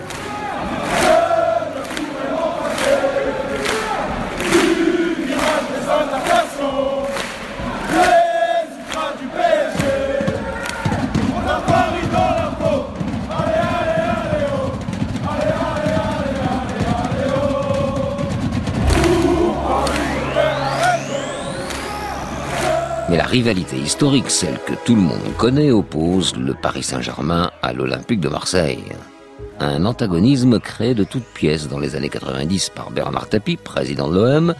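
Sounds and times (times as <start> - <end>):
PSG supporters chanting in the Virage Auteuil stand: 0.0 - 24.3
regular sharp beats: 9.8 - 23.0
speech: 23.4 - 34.5.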